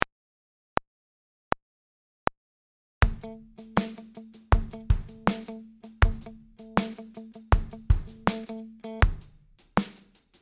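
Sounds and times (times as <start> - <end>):
groove music: 3.0 - 9.9.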